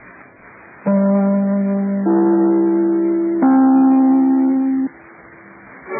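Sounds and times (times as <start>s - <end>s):
broadcast chime notes: 0.9s - 4.9s.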